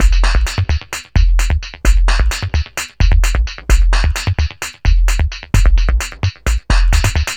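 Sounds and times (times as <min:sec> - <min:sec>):
industrial beats: 0:00.0 - 0:07.3.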